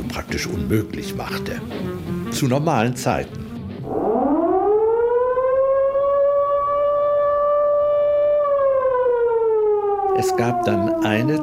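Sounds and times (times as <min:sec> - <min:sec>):
speech: 0:00.2 - 0:04.0, 0:10.2 - 0:11.4
air raid siren: 0:03.8 - 0:11.4.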